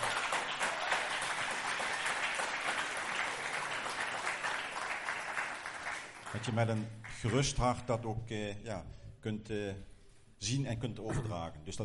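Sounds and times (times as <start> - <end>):
audience applause: 0.0 - 7.2
speech: 6.3 - 11.8.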